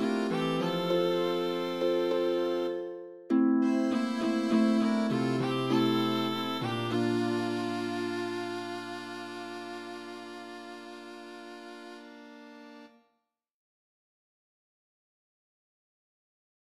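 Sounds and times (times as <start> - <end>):
harp: 0.0 - 12.8.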